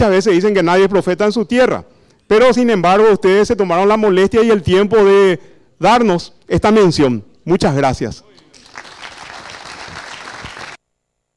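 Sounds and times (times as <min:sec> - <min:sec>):
speech: 0:00.0 - 0:08.3
audience applause: 0:08.4 - 0:10.8.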